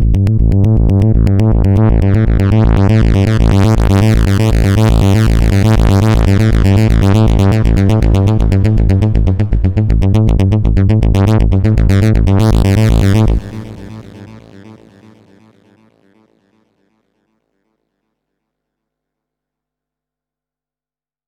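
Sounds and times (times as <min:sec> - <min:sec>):
Oberheim Matrix-6R synthesizer arpeggio with Logic delay effect: 0:00.2 - 0:16.2.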